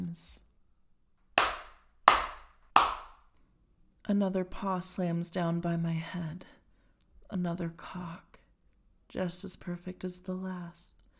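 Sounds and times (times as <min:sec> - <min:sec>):
speech: 0:00.1 - 0:00.4, 0:04.1 - 0:06.6, 0:07.3 - 0:08.3, 0:09.1 - 0:11.0
hand slapping buttocks: 0:01.4 - 0:03.2.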